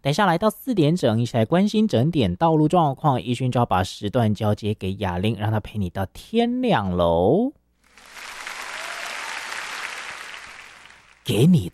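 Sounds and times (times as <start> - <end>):
speech: 0.0 - 7.6, 11.3 - 11.7
crowd applause: 7.9 - 11.3.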